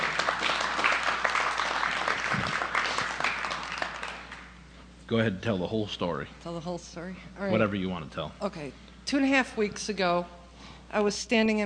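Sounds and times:
audience clapping: 0.0s - 4.6s
speech: 5.1s - 11.6s.

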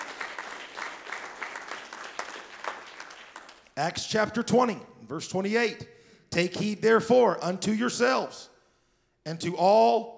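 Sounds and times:
audience clapping: 0.0s - 3.8s
speech: 3.8s - 8.5s, 9.2s - 10.1s.

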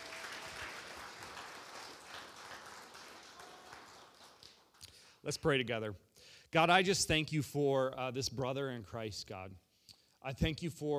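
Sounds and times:
church congregation applauding to welcome a speaker: 0.0s - 5.0s
speech: 5.2s - 9.6s, 10.2s - 10.9s.

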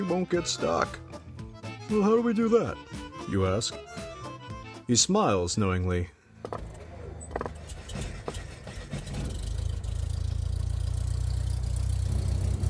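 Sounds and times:
speech: 0.1s - 1.2s, 1.9s - 4.1s, 4.9s - 6.7s
engine of an old two-seat airplane: 7.3s - 12.6s.

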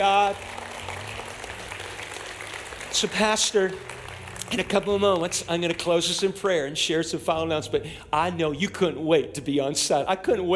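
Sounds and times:
audience clapping hands: 0.0s - 7.0s
speech: 3.0s - 10.5s.

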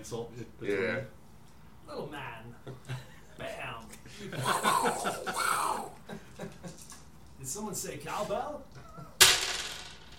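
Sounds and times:
speech: 0.0s - 1.2s, 1.9s - 5.8s, 7.4s - 8.8s
laughter: 4.1s - 6.8s
many dice rolling: 9.2s - 10.1s.

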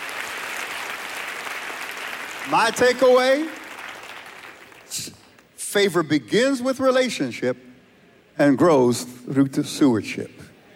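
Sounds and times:
audience applauding: 0.0s - 5.5s
speech: 2.5s - 3.6s, 4.9s - 7.7s, 8.4s - 10.4s.

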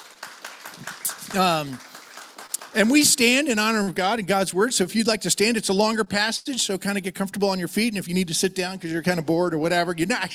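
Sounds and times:
group clapping: 0.0s - 3.7s
speech: 1.3s - 1.9s, 2.8s - 10.3s.

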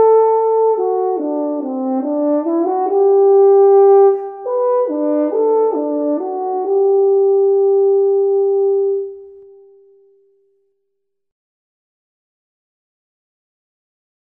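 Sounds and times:
horn: 0.0s - 10.2s.

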